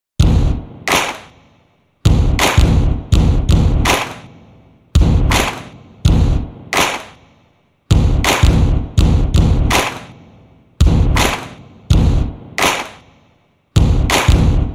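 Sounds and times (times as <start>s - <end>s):
stadium clapping: 0.9s - 1.4s, 2.4s - 2.7s, 3.8s - 4.3s, 5.3s - 5.8s, 6.7s - 7.2s, 8.2s - 8.5s, 9.7s - 10.2s, 11.2s - 11.6s, 12.6s - 13.1s, 14.1s - 14.5s
stadium stomping: 2.0s - 4.3s, 5.0s - 7.2s, 7.9s - 10.2s, 10.8s - 13.1s, 13.8s - 14.7s.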